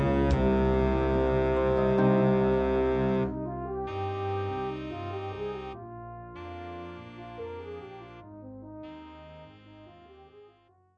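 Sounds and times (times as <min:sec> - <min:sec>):
fanfare: 0:00.0 - 0:08.2.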